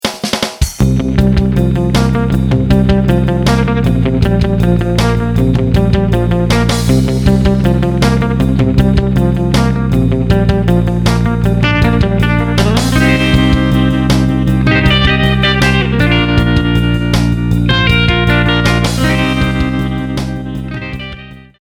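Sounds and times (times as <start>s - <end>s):
synth patch demo: 1.2s - 20.8s.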